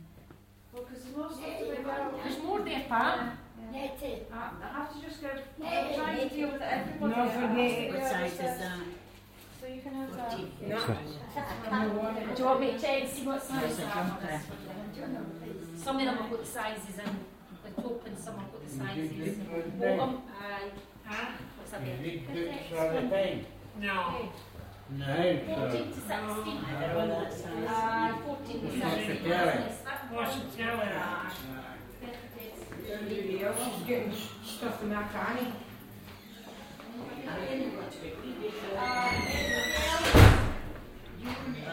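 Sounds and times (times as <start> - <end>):
day care centre soundscape in a care home: 0.0 - 41.7.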